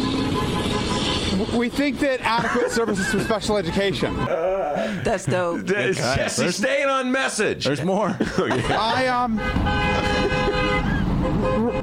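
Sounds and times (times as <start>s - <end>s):
car horns honking: 0.0s - 4.3s, 8.7s - 11.8s
speech: 1.4s - 11.8s
laughter: 2.2s - 6.7s, 7.9s - 11.0s.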